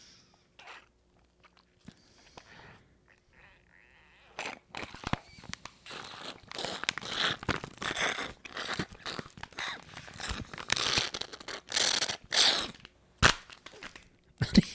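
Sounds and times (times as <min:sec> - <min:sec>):
Capri Sun juice pouch crushed against someone's head: 0:04.2 - 0:14.2.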